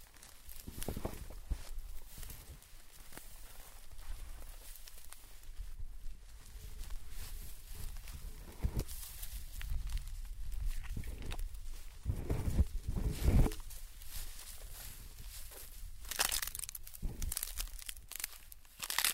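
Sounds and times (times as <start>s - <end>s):
footsteps: 0.2s - 19.0s.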